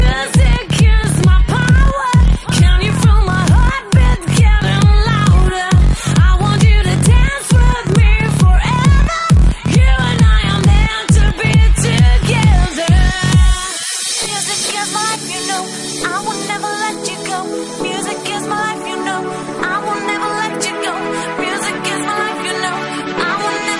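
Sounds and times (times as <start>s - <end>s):
house music vocals: 0.0s - 23.7s.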